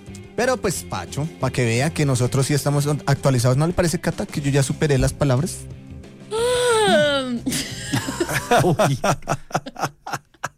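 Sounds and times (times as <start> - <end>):
speech: 0.4 - 5.8, 8.4 - 9.9
voice imitating a yawn: 6.3 - 7.5
short choppy breathy chuckling: 7.4 - 10.5.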